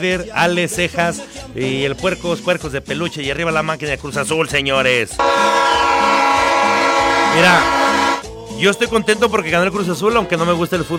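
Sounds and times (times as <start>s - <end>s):
speech: 0.0s - 5.8s, 7.3s - 7.8s, 8.6s - 10.9s
locomotive train horn blaring: 5.2s - 8.2s.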